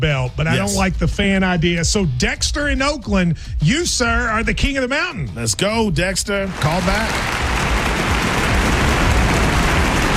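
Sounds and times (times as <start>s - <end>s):
speech: 0.0s - 7.7s
applause sound effect: 6.5s - 10.1s.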